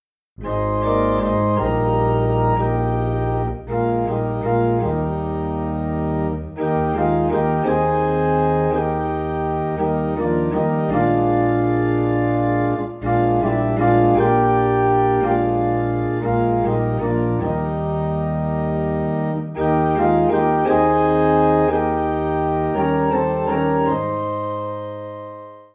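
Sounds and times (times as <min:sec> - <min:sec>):
organ in E flat: 0:00.4 - 0:25.7.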